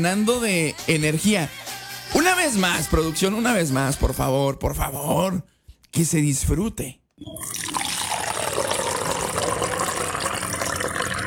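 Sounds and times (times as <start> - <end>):
speech: 0.0 - 1.6, 2.2 - 7.7
coffee pouring: 7.2 - 11.2.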